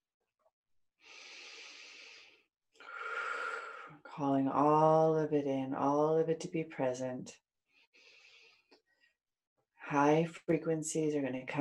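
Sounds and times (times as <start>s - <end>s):
deep breath: 1.0s - 4.0s, 7.7s - 9.2s
speech: 4.2s - 7.4s, 9.9s - 11.5s.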